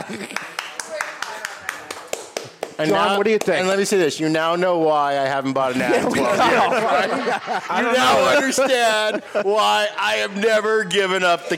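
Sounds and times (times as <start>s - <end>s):
laughter: 0.0s - 0.6s, 5.7s - 10.4s, 11.1s - 11.5s
steady crisp clapping: 0.1s - 3.6s
speech: 2.8s - 11.5s.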